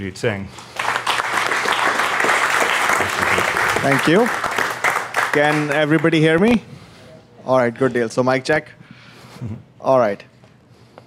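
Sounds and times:
speech: 0.0 - 0.7, 3.0 - 4.5, 5.3 - 6.7, 7.4 - 8.8, 9.4 - 10.3
audience applause: 0.7 - 6.2.

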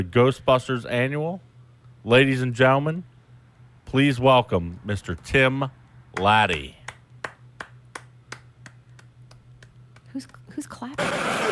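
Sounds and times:
speech: 0.0 - 3.1, 3.9 - 6.8, 10.2 - 11.4
low steady hum: 0.0 - 11.4
person clapping: 6.2 - 10.4.

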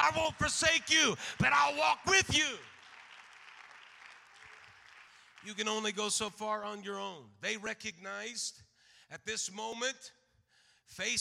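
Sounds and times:
audience clapping: 0.0 - 6.3
speech: 0.1 - 2.7, 5.4 - 10.2, 10.9 - 11.1.

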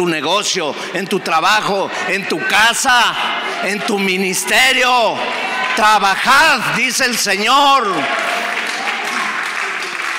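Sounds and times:
speech: 0.0 - 8.4
sparse applause from a few people: 1.6 - 10.1.

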